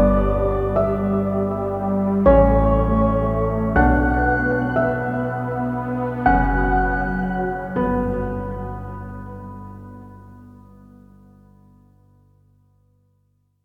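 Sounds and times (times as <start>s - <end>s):
inspiring epic music: 0.0s - 10.1s.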